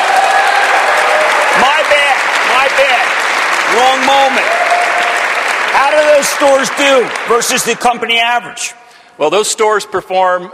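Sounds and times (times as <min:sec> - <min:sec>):
audience applause: 0:00.0 - 0:08.1
speech: 0:03.8 - 0:04.6, 0:05.9 - 0:10.5.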